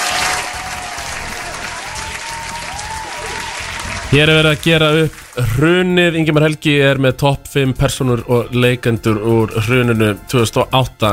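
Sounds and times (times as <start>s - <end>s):
audience applause: 0.0s - 5.9s
speech: 4.1s - 11.1s.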